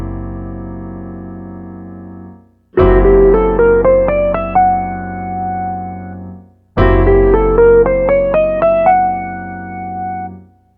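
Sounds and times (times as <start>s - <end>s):
Triton synthesizer modes: 2.8s - 10.1s.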